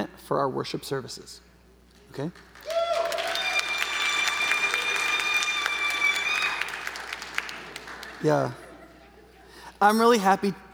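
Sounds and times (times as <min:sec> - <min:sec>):
speech: 0:00.0 - 0:01.5, 0:02.1 - 0:02.7, 0:08.2 - 0:08.6, 0:09.8 - 0:10.7
audience cheering and applauding: 0:02.4 - 0:08.7
laughter: 0:07.6 - 0:09.7.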